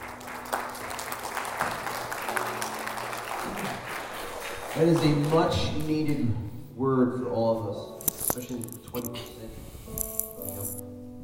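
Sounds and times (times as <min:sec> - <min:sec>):
audience applause: 0:00.0 - 0:06.0
speech: 0:04.8 - 0:10.0.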